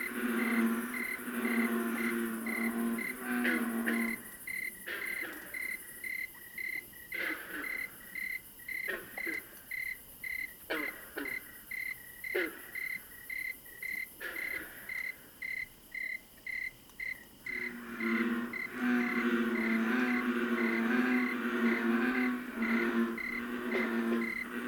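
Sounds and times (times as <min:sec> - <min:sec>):
bullfrogs croaking: 0:00.0 - 0:24.6
tree cricket chirping: 0:00.0 - 0:24.6.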